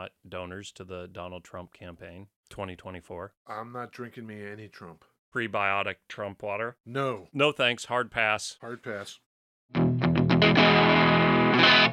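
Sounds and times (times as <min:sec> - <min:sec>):
speech: 0:00.0 - 0:09.8
electric guitar played through effects: 0:09.7 - 0:11.9.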